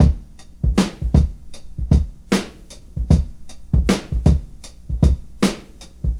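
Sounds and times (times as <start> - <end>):
breakbeat drums: 0.0 - 6.1.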